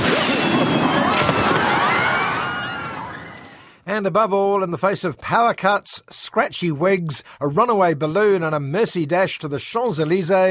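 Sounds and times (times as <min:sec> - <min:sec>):
fireworks exploding: 0:00.0 - 0:03.5
speech: 0:04.0 - 0:10.5.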